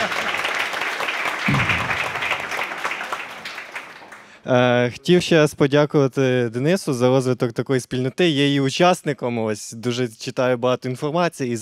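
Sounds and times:
audience applause: 0.0 - 4.3
speech: 4.5 - 11.5.

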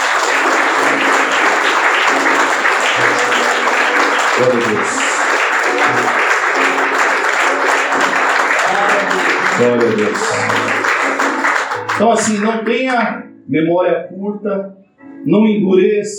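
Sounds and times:
audience applause: 0.0 - 12.7
speech: 4.4 - 5.1, 9.6 - 10.9, 12.0 - 16.1.

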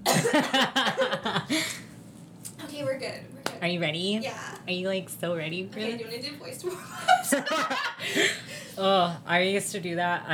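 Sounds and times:
person coughing: 0.0 - 0.6
speech: 0.4 - 0.9, 3.6 - 10.3.

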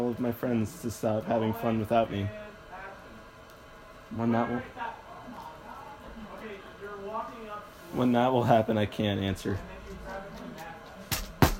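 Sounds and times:
low hiss: 0.0 - 11.5
speech: 0.1 - 2.6, 4.1 - 5.5, 6.4 - 10.7
fake off-brand plastic lightsaber hitting a couch: 11.1 - 11.5.

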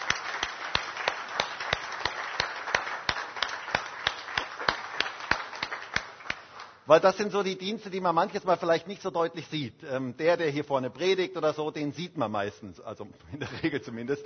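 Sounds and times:
audience applause: 0.0 - 6.8
speech: 6.9 - 14.2
laughter: 13.3 - 14.1.

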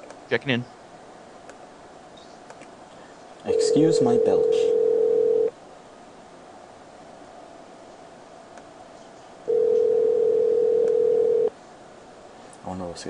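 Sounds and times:
speech: 0.3 - 0.8, 3.4 - 4.7
telephone dial tone: 3.5 - 5.5, 9.5 - 11.5.

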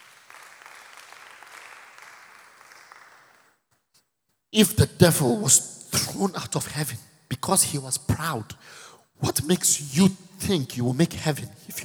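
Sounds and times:
crowd clapping: 0.0 - 3.6
speech: 4.5 - 11.8.

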